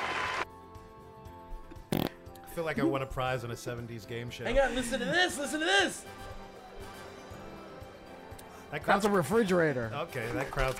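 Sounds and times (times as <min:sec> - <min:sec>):
speech: 0:02.6 - 0:06.4, 0:08.7 - 0:10.7
fake audience applause sound effect: 0:10.2 - 0:10.7.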